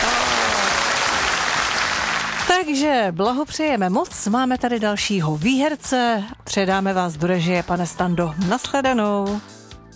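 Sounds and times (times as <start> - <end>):
applause for a game show winner: 0.0 - 2.5
speech: 2.6 - 9.9.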